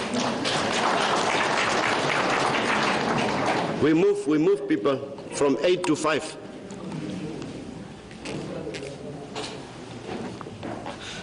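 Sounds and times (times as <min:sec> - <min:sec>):
audience clapping hands: 0:00.0 - 0:03.9
speech: 0:03.8 - 0:06.5.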